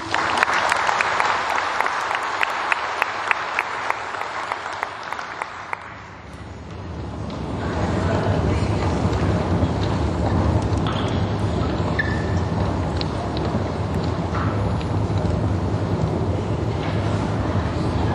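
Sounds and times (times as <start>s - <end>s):
audience applause: 0.0s - 6.3s
low rumbling noise: 0.0s - 18.1s.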